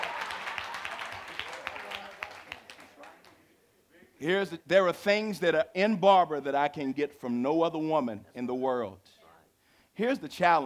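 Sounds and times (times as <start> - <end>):
audience clapping: 0.0 - 3.4
speech: 4.2 - 9.1, 10.0 - 10.6.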